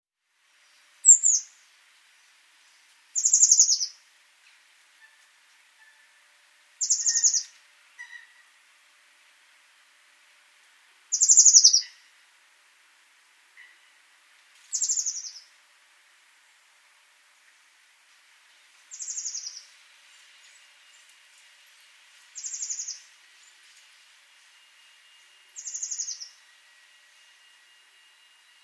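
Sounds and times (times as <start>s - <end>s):
steady hiss: 0.2s - 28.6s
Eurasian blue tit chattering calls: 3.2s - 3.9s, 6.8s - 7.4s, 11.1s - 11.9s, 25.6s - 26.3s.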